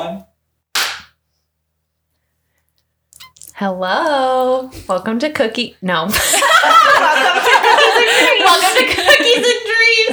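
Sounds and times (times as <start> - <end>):
single hand clap for audio sync: 0.8 - 1.2
speech: 3.6 - 10.1
laughter: 6.1 - 10.1.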